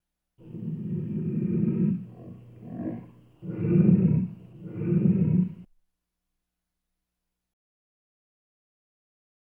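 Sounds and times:
lion growling: 0.4s - 5.7s.

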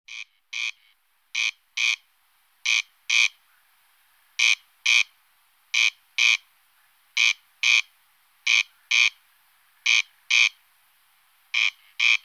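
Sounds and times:
corn crake rasping calls: 0.1s - 2.0s, 2.6s - 3.7s, 4.4s - 5.1s, 5.7s - 6.5s, 7.2s - 9.2s, 9.8s - 10.6s, 11.5s - 12.2s.

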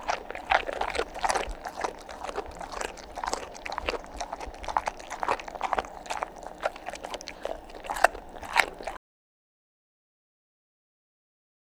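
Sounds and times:
dog eating with crunchy bites: 0.0s - 9.0s.

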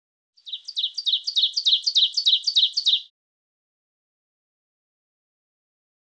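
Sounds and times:
bird trilling: 0.4s - 3.1s.

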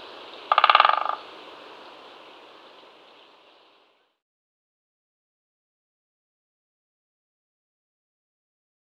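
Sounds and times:
Great spotted woodpecker drumming: 0.0s - 3.3s.

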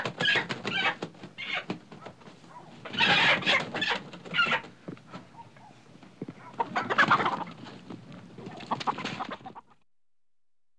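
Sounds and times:
chicken clucking: 0.1s - 7.8s, 8.4s - 9.8s.

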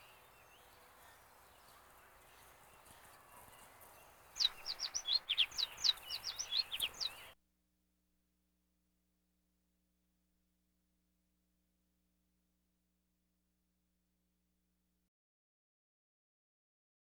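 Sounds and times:
finch singing: 0.0s - 7.4s.

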